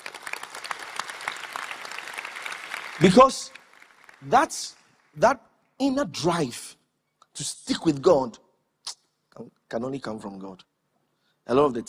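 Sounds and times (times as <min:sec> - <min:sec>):
audience applause: 0:00.0 - 0:05.2
speech: 0:03.0 - 0:03.6, 0:04.2 - 0:06.8, 0:07.4 - 0:08.4, 0:09.4 - 0:10.7, 0:11.5 - 0:11.8.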